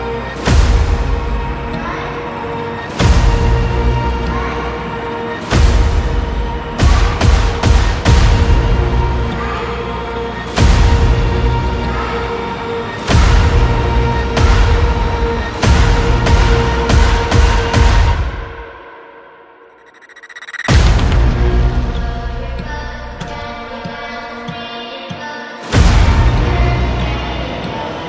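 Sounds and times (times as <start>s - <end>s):
horror-style nursery rhyme music: 0.0s - 28.0s.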